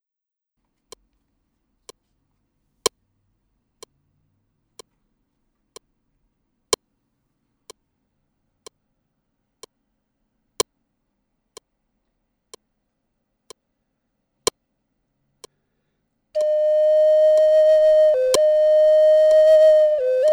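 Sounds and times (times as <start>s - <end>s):
Zuni sunrise flute: 16.4s - 20.3s.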